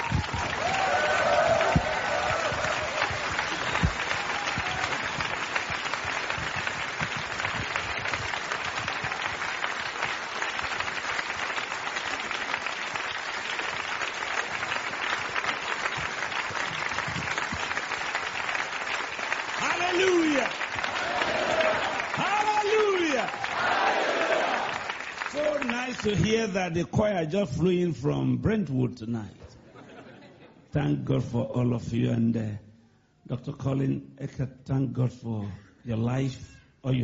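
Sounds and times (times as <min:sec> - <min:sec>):
audience standing and applauding a returning guest: 0:00.0 - 0:26.5
speech: 0:26.0 - 0:29.4, 0:30.8 - 0:32.6, 0:33.3 - 0:37.0.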